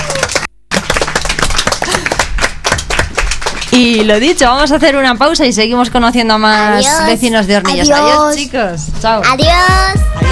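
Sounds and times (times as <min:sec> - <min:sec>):
crowd applauding: 0:00.0 - 0:04.4
speech: 0:03.8 - 0:10.3.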